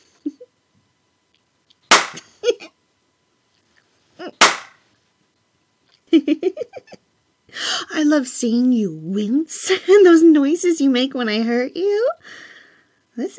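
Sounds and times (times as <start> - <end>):
slaps on a thigh: 1.9 - 2.2, 4.4 - 4.7
speech: 6.2 - 6.6, 8.0 - 12.5, 13.2 - 13.3.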